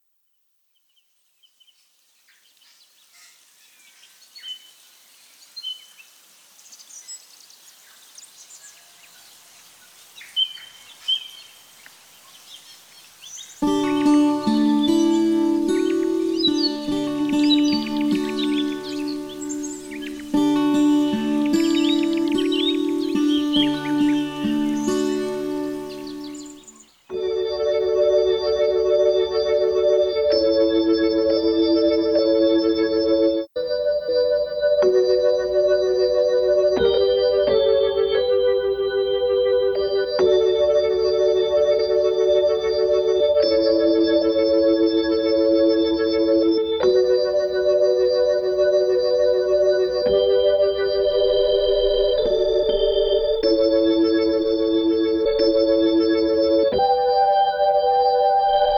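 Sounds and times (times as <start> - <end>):
organ: 13.6 - 58.7.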